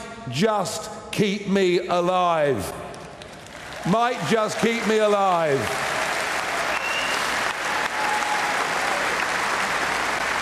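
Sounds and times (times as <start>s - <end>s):
speech: 0.3s - 2.8s, 3.8s - 5.9s
audience applause: 3.2s - 10.4s.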